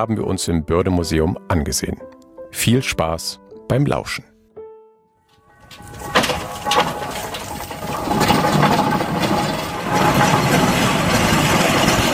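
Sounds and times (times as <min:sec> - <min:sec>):
speech: 0:00.0 - 0:04.3
steam-powered locomobile engine running: 0:05.7 - 0:12.1.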